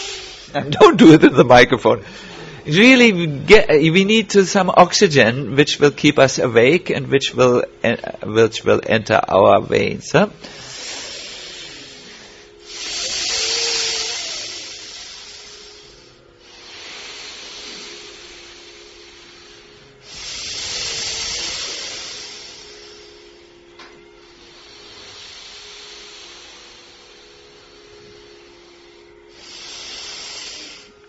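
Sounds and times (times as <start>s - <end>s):
slow deep breathing during a breathing exercise: 0.0s - 1.2s, 1.9s - 2.7s, 10.4s - 31.0s
speech: 0.5s - 10.7s.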